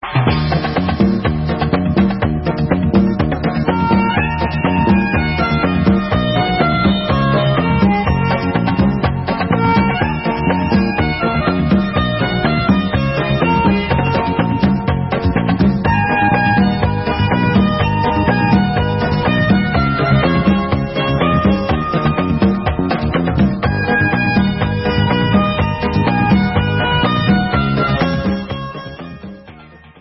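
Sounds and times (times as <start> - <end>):
instrumental music: 0.0 - 29.9.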